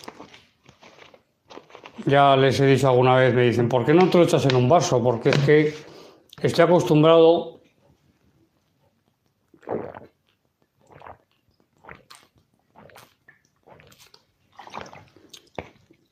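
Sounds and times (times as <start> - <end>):
speech: 2.0 - 7.6
gulping water from a large water bottle: 9.2 - 16.1.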